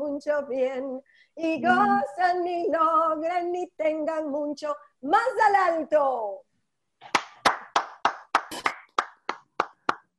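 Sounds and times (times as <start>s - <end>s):
speech: 0.2s - 7.2s
steady hand clapping: 7.0s - 10.1s.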